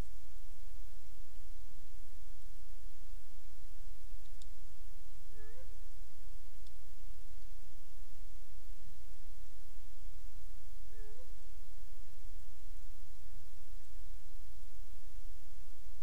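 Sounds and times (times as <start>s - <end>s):
background hiss: 0.0s - 16.0s
owl hooting: 5.3s - 5.9s, 10.8s - 11.4s.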